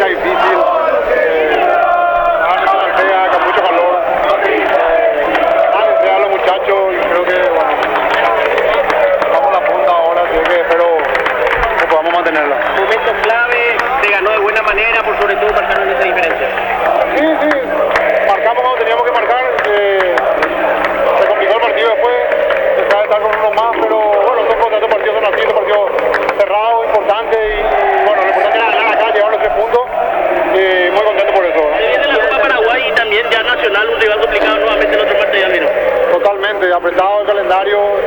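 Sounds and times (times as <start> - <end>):
commentator talking: 0.0 - 38.0
football fans singing in a stadium: 0.0 - 38.0
laughter: 0.0 - 38.0.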